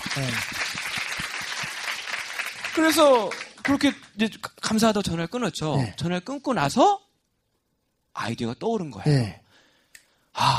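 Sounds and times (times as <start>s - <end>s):
audience applause: 0.0s - 4.1s
speech: 0.2s - 0.7s, 2.8s - 7.0s, 8.2s - 9.4s, 10.4s - 10.5s.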